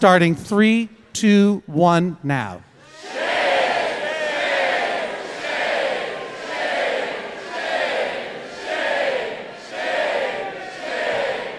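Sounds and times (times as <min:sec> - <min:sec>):
speech: 0:00.0 - 0:02.7
crowd shouting shame together: 0:02.7 - 0:11.5.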